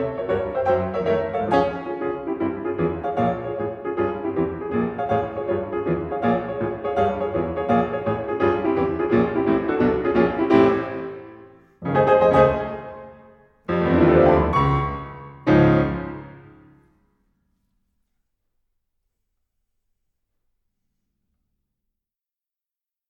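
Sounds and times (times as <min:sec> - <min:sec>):
burlesque piano sonatina march: 0:00.0 - 0:17.2.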